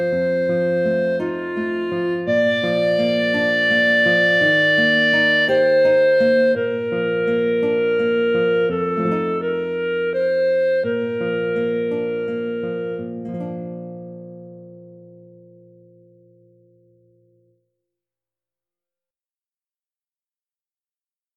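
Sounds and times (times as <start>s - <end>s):
clarinet playing a carol: 0.0s - 16.1s
guitar playing a carol: 0.0s - 17.6s.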